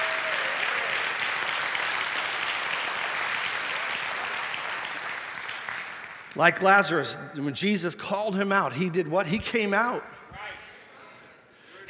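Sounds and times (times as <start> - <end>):
audience clapping hands in praise: 0.0 - 6.7
speech: 6.3 - 10.1.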